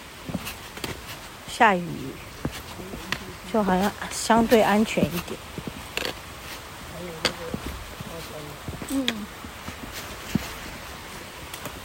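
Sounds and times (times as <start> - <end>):
footsteps walking down a forest trail: 0.0 - 11.8
speech: 1.6 - 2.3, 3.5 - 5.5.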